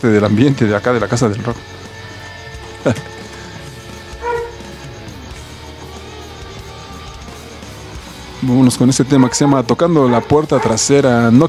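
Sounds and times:
speech: 0.0 - 1.8, 2.8 - 3.1, 8.4 - 11.4
dog barking: 4.2 - 4.7, 9.0 - 11.0.

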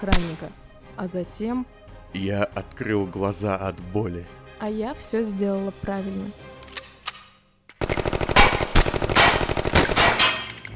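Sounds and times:
automatic gunfire: 0.0 - 0.5, 7.8 - 10.4
speech: 0.0 - 6.6.

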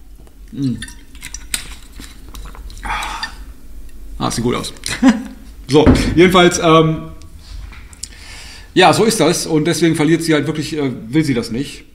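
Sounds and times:
speech: 0.5 - 1.0, 4.2 - 7.1, 8.8 - 11.9
glass clinking: 0.7 - 1.5.

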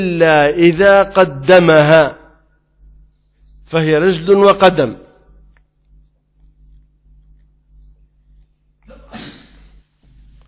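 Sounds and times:
speech: 0.0 - 2.2, 3.7 - 5.0
person sneezing during an Arabic religious lecture: 8.8 - 9.8.

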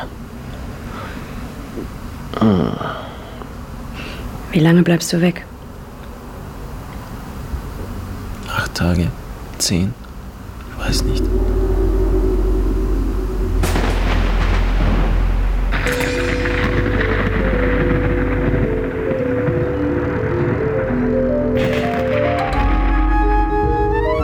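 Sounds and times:
continuous low roar: 0.0 - 23.1
speech: 1.8 - 3.1, 4.5 - 5.5, 8.8 - 10.0, 10.9 - 11.5
sustained droning tones shifting in pitch: 10.5 - 23.2
thunder crashes: 10.8 - 23.3.

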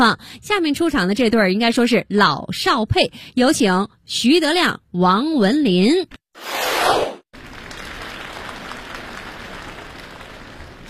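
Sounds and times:
speech: 0.0 - 6.7
audience applause: 7.4 - 10.8.

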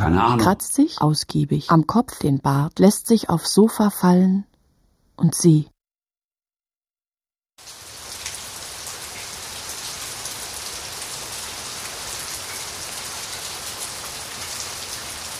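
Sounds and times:
speech: 0.0 - 4.5, 5.2 - 5.7
rain falling: 7.6 - 15.3.

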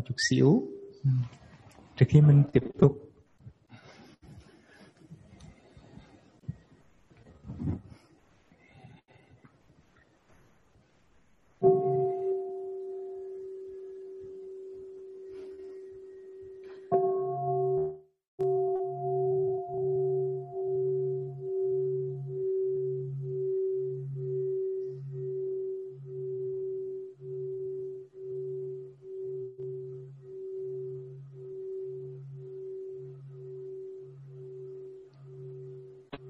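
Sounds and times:
speech: 0.0 - 1.4, 2.0 - 3.1
meditation bell ringing: 0.4 - 1.1, 11.6 - 36.2.

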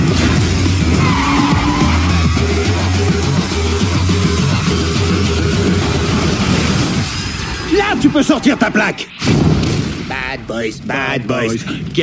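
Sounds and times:
car engine roaring during a police chase: 0.2 - 7.7
tires skidding and squealing: 0.8 - 2.9
speech: 8.2 - 9.2, 10.3 - 12.0.

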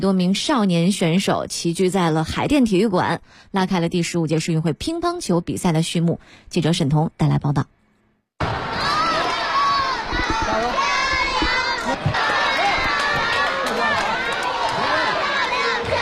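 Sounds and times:
speech: 0.0 - 7.8
cheering: 8.4 - 15.9
children shouting at a youth table tennis competition in Haidian Gymnasium: 8.4 - 15.9.

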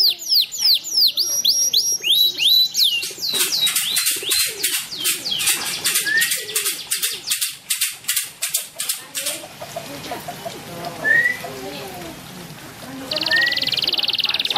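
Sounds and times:
bird singing trills and whistles: 0.0 - 8.0, 11.0 - 11.5, 13.1 - 14.5.

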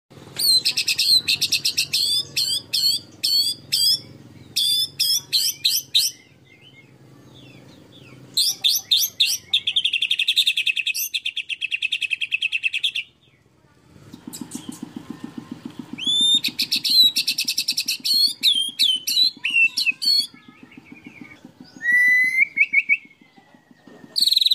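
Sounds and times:
canary singing: 0.1 - 13.6, 14.3 - 24.5.

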